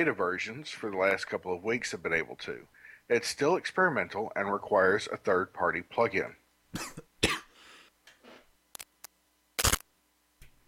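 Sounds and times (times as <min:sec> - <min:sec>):
speech: 0:00.0 - 0:07.1
person coughing: 0:06.8 - 0:07.5.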